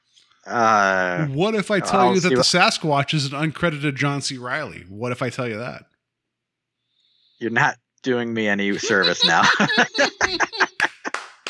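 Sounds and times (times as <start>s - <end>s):
speech: 0.4s - 5.9s, 7.4s - 10.4s
laughter: 1.2s - 5.6s, 8.7s - 11.4s
hand clapping: 10.7s - 11.4s.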